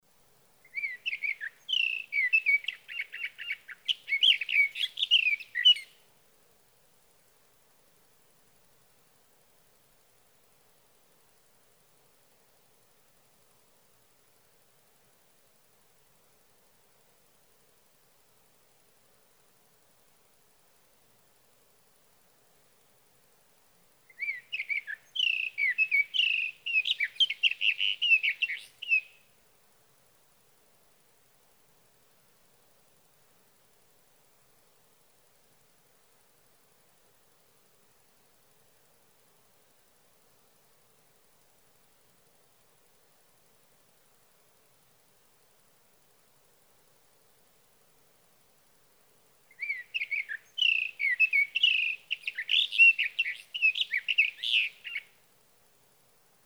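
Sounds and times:
sage thrasher: 0:00.7 - 0:06.0, 0:24.1 - 0:29.2, 0:49.5 - 0:55.1.

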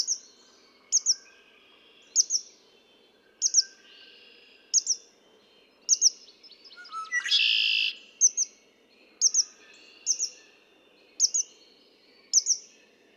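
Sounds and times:
red-winged blackbird song: 0:00.0 - 0:13.1.

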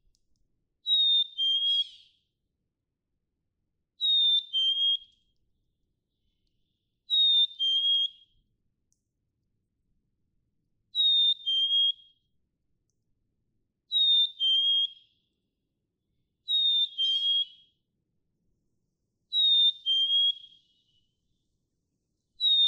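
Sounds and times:
black-capped chickadee whistled song: 0:00.8 - 0:02.2, 0:04.0 - 0:05.3, 0:07.0 - 0:08.4, 0:10.9 - 0:12.3, 0:13.9 - 0:15.3, 0:16.4 - 0:17.8, 0:19.3 - 0:21.2, 0:22.4 - 0:22.6.

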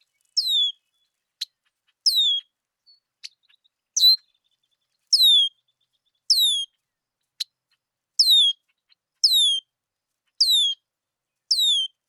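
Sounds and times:
Red-winged Blackbird calling: 0:00.4 - 0:00.8, 0:02.0 - 0:02.5, 0:05.1 - 0:05.7, 0:06.3 - 0:06.8, 0:08.2 - 0:09.6, 0:10.4 - 0:10.8, 0:11.5 - 0:11.9.

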